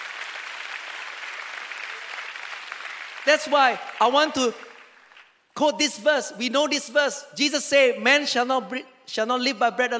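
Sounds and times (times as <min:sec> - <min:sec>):
audience applause: 0:00.0 - 0:05.3
speech: 0:03.2 - 0:04.7, 0:05.6 - 0:09.9.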